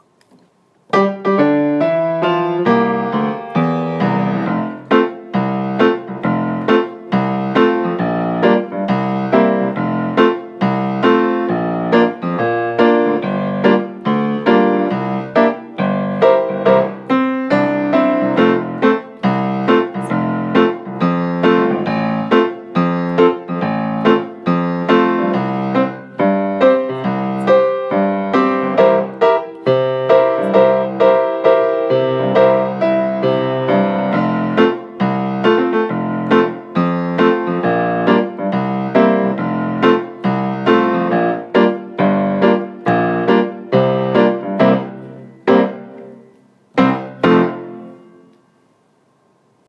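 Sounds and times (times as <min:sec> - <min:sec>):
musical accompaniment: 0:00.0 - 0:48.9.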